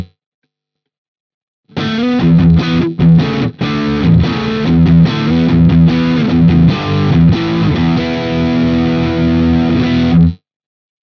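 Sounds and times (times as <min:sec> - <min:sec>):
Hagström guitar rhythm riff: 0:01.7 - 0:10.4.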